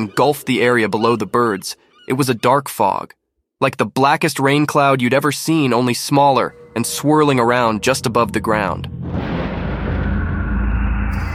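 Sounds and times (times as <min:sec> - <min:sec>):
speech: 0:00.0 - 0:09.1
thunder clap: 0:06.2 - 0:11.3.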